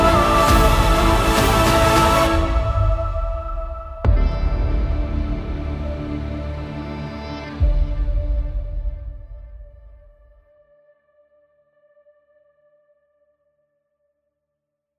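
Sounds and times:
cinematic epic trailer music: 0:00.0 - 0:10.4.

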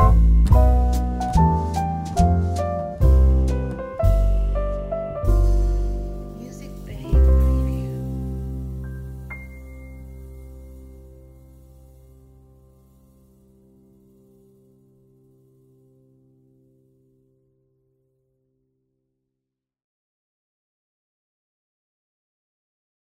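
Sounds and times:
wedding march music: 0:00.0 - 0:08.5.

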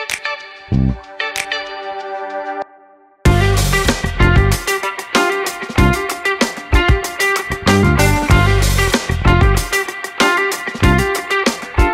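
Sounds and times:
fast action music: 0:03.3 - 0:11.9.

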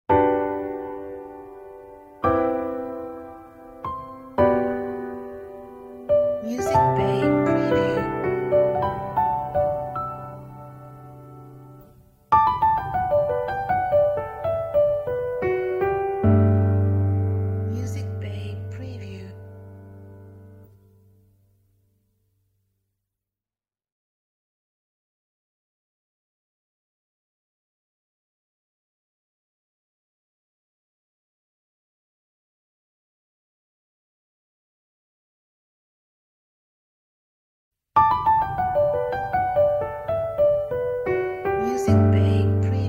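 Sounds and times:
piano logo jingle: 0:00.1 - 0:21.2, 0:38.0 - 0:42.8.

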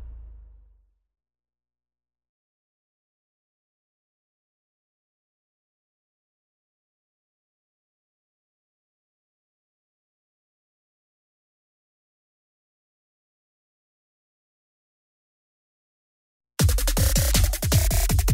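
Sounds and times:
fast breakbeat: 0:16.6 - 0:18.3.

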